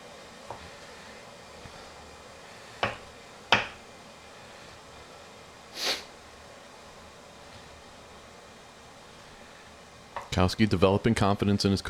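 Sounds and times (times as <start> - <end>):
knife chopping chicken breast on a cutting board: 2.8 - 3.8
speech: 10.4 - 11.8.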